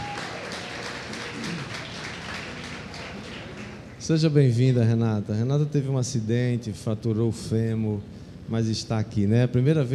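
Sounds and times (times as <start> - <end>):
audience applause: 0.0 - 4.0
speech: 4.0 - 9.9.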